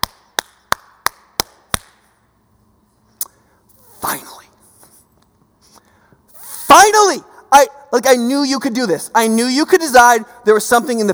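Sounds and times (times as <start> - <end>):
hands clapping: 0.0 - 2.0
speech: 7.1 - 11.1.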